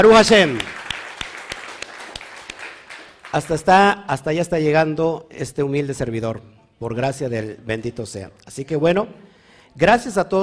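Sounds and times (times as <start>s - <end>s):
speech: 0.0s - 0.7s, 3.3s - 9.2s, 9.8s - 10.4s
applause: 0.0s - 3.8s.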